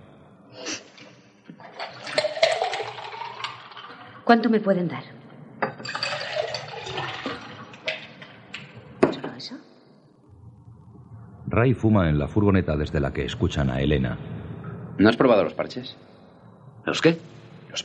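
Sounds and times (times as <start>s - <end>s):
liquid poured for lemonade: 1.5s - 4.3s, 5.7s - 8.7s
speech: 4.3s - 5.1s, 11.6s - 14.4s, 15.0s - 16.1s, 16.8s - 17.3s
clinks: 5.6s - 7.0s.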